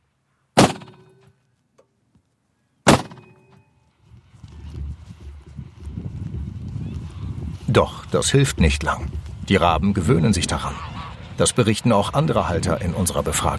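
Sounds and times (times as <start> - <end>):
gas cannon bird scarer firing: 0.6 - 1.1, 2.9 - 3.4
speech: 7.7 - 13.5.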